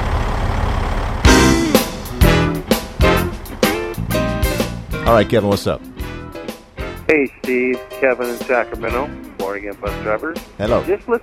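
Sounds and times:
low engine-like rumble: 0.0 - 5.0
radio jingle blaring horn-like stabs: 1.3 - 4.8
speech: 5.1 - 5.9, 7.1 - 11.2.

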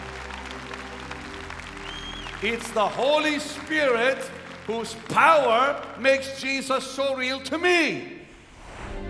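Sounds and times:
crowd applauding: 0.0 - 7.2
speech: 2.4 - 8.2.

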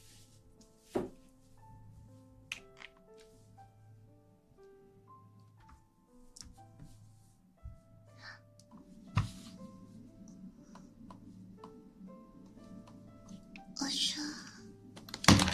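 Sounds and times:
ear massage rubbing: 0.0 - 2.3, 6.2 - 8.0, 8.8 - 13.8
faint tonal hum: 0.0 - 15.5.

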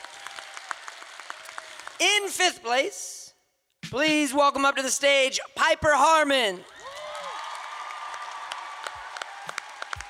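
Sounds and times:
audience applause: 0.0 - 2.0, 6.6 - 10.0
speech: 2.0 - 3.2, 3.9 - 6.7.

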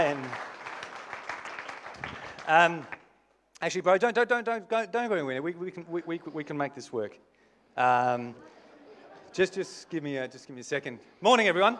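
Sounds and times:
audience applause at an Easter Sunday service: 0.0 - 3.0
speech: 2.5 - 3.0, 3.6 - 8.5, 9.4 - 11.7.

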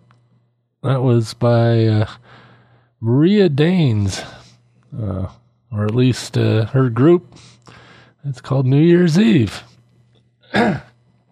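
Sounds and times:
speech: 0.8 - 2.4, 3.0 - 9.7, 10.5 - 10.9
person coughing: 10.5 - 11.0.

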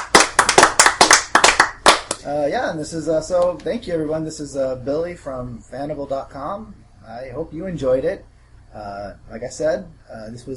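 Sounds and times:
small group hand clapping: 0.0 - 2.2
speech: 2.2 - 10.5.

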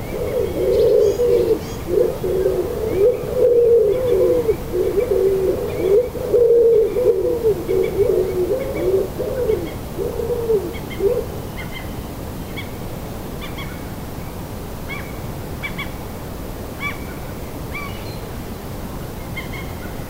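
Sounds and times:
birds chirping at sunrise in a Danish city: 0.0 - 9.8
pigeon cooing in a Danish city: 0.0 - 11.4.

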